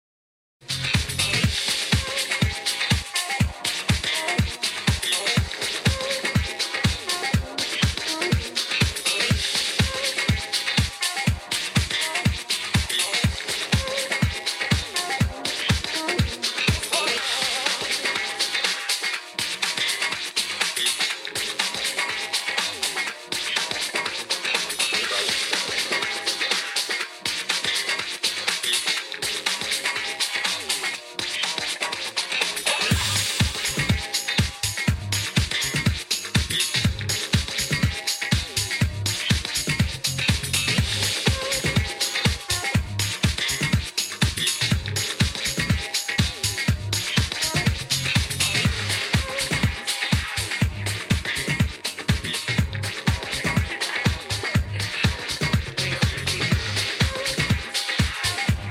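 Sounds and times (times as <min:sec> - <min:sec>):
disco music: 0:00.6 - 0:58.6.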